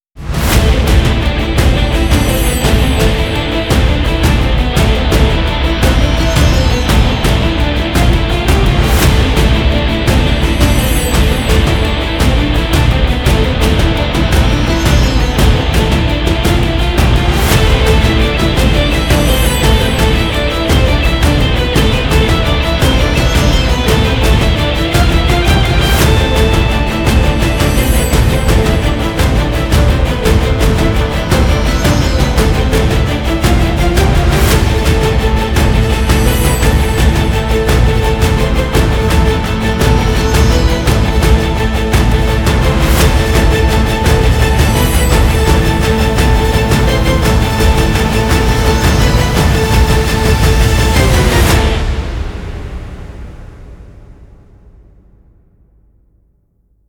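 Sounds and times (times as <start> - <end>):
tense guitar: 0.3 - 52.3.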